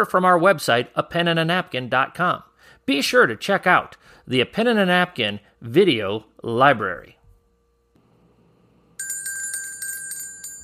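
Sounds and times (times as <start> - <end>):
speech: 0.0 - 7.2
metallic bell sound effect ringing: 9.0 - 10.6.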